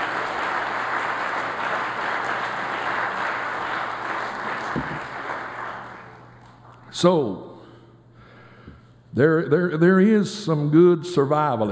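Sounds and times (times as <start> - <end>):
audience clapping hands to the Lord: 0.0 - 6.8
speech: 7.0 - 7.5, 9.2 - 11.7.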